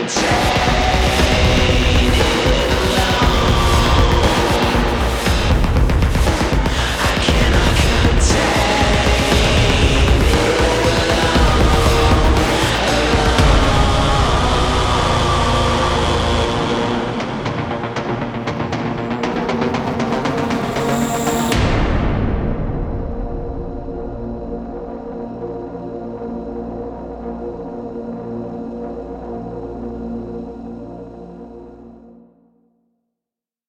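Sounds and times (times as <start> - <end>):
music outro cue: 0.2 - 24.3.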